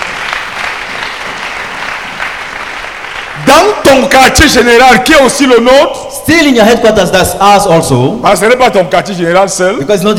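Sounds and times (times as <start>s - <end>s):
audience clapping for the Lord: 0.0s - 4.4s
speech: 3.4s - 10.1s.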